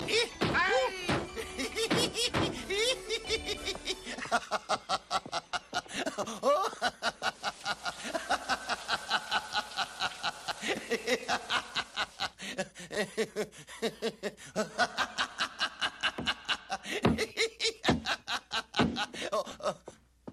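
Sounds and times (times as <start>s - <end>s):
person laughing: 0.0s - 20.0s.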